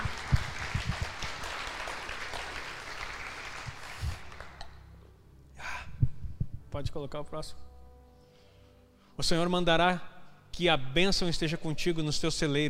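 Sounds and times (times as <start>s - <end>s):
audience applause: 0.0s - 4.6s
speech: 6.8s - 7.7s, 9.2s - 12.6s.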